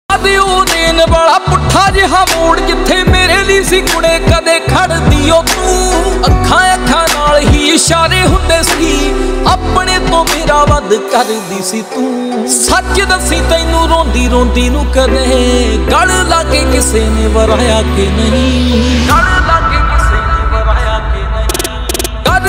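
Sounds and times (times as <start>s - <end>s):
Desi Punjabi ringtone music: 0.1s - 22.4s.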